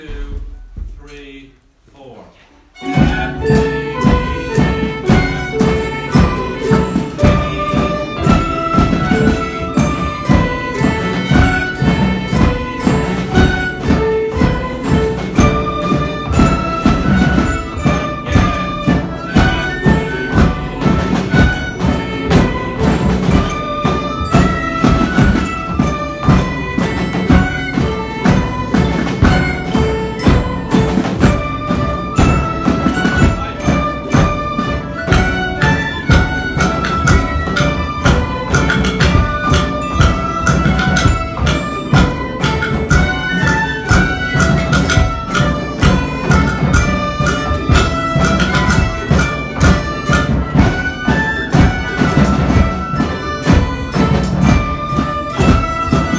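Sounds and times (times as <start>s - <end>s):
Kerry polka band playing: 2.5s - 56.1s.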